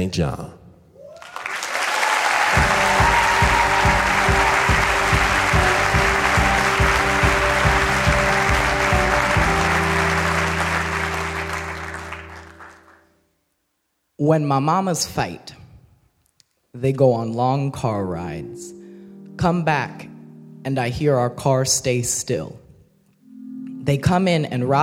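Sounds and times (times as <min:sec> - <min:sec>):
speech: 0:00.0 - 0:00.6, 0:14.2 - 0:15.6, 0:16.7 - 0:18.8, 0:19.4 - 0:22.6, 0:23.9 - 0:24.8
audience applause and cheering: 0:01.0 - 0:13.1
pulsing bass-heavy beat: 0:02.6 - 0:10.2.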